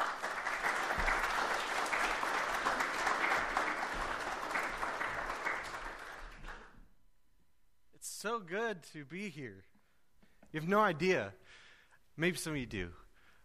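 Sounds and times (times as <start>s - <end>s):
church congregation applauding a guest pastor: 0.0s - 6.9s
speech: 8.2s - 9.7s, 10.5s - 11.6s, 12.2s - 13.0s.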